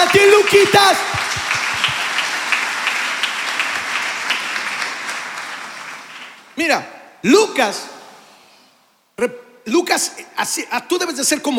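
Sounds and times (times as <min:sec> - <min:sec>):
audience applause: 0:00.0 - 0:06.5
speech: 0:00.5 - 0:01.2, 0:06.6 - 0:07.9, 0:09.2 - 0:11.5.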